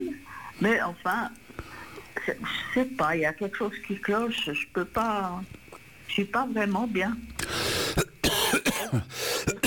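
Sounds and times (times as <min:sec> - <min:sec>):
speech: 0:00.6 - 0:01.4, 0:02.3 - 0:05.6, 0:06.2 - 0:07.6, 0:08.9 - 0:09.2
person coughing: 0:07.9 - 0:09.6.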